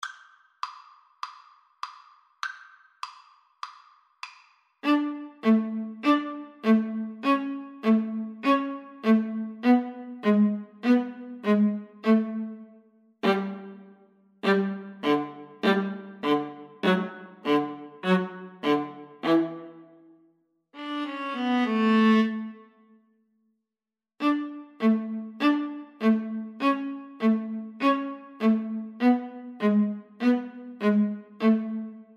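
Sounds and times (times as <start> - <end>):
viola duet: 4.8 - 20.0, 20.8 - 22.6, 24.2 - 32.0.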